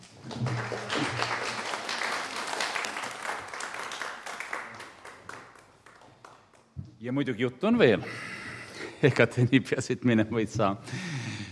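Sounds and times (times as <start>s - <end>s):
applause from audience: 0.0s - 6.7s
speech: 7.0s - 8.4s, 9.0s - 11.2s.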